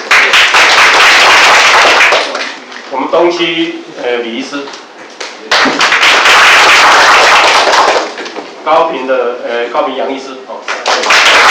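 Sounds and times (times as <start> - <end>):
warm applause at a doctors' association meeting: 0.0 - 2.7, 5.5 - 8.4, 10.7 - 11.4
speech: 3.2 - 4.8, 8.7 - 11.2.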